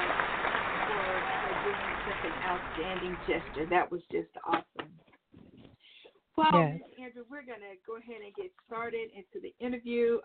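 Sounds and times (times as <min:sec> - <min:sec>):
round of applause: 0:00.0 - 0:03.7
speech: 0:02.3 - 0:04.7, 0:06.4 - 0:10.2.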